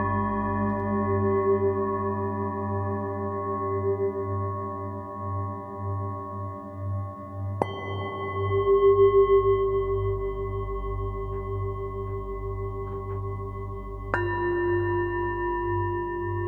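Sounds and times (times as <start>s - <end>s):
bells pad: 0.0s - 5.4s, 7.6s - 16.4s.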